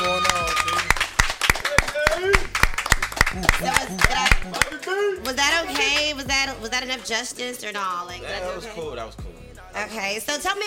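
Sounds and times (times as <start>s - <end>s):
hand claps greeting a guest: 0.0s - 6.2s
speech: 5.3s - 10.6s.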